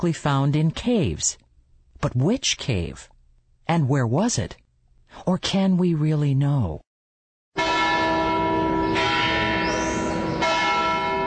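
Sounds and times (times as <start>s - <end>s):
speech: 0.0s - 1.4s, 2.0s - 3.1s, 3.7s - 6.8s
church bells ringing: 7.6s - 11.2s.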